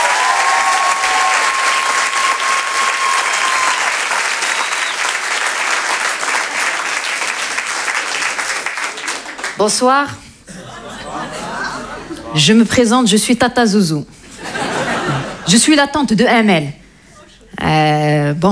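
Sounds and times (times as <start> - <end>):
audience applause: 0.0 - 9.6
speech: 9.6 - 10.3, 12.4 - 14.2, 15.5 - 16.8, 17.6 - 18.5
laughter: 10.4 - 12.5, 14.2 - 15.7.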